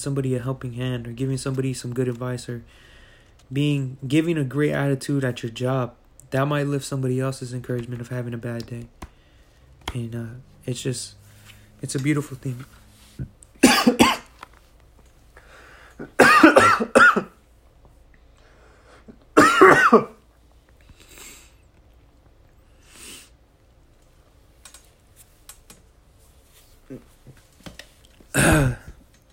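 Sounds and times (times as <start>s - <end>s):
speech: 0.0s - 9.1s, 9.8s - 11.2s, 11.8s - 14.1s
person coughing after choking on something: 13.6s - 14.3s, 16.0s - 17.4s, 19.4s - 20.2s, 28.3s - 29.0s
person clearing throat after choking: 28.3s - 29.0s.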